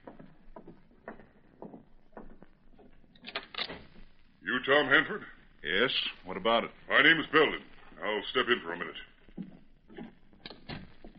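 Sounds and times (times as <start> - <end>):
door being opened: 3.2 - 4.0
speech: 4.7 - 9.1.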